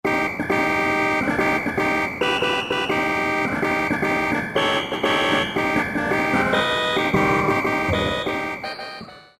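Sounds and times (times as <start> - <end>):
Yamaha TG33 synthesizer: 0.1 - 9.3.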